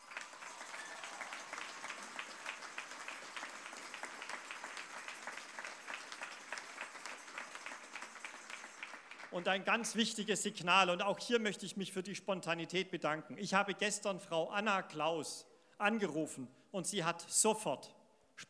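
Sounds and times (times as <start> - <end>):
audience applause: 0.0 - 9.8
speech: 9.3 - 18.4.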